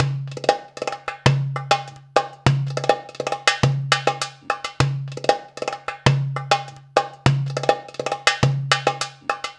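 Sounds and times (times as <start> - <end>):
Arabian traditional percussion loop: 0.0 - 9.5.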